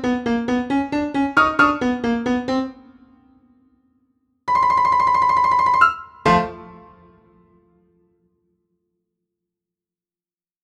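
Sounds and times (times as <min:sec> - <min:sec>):
puppy piano: 0:00.0 - 0:03.7, 0:04.5 - 0:08.0.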